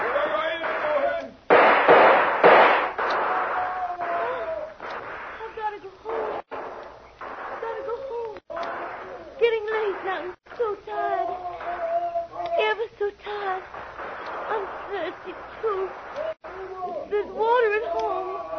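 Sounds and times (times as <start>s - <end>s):
gunfire: 0.0s - 18.3s.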